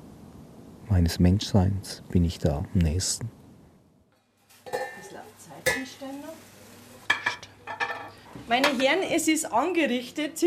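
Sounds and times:
speech: 1.0s - 3.4s, 8.5s - 10.4s
pheasant breasts sizzling in a pan of tomato sauce: 4.4s - 7.4s
utensils clinking and scraping against cookware: 4.6s - 6.0s, 7.1s - 9.0s.

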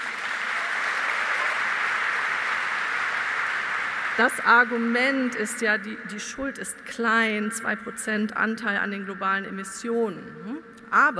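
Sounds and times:
audience applause: 0.0s - 5.5s
speech: 4.2s - 11.1s.

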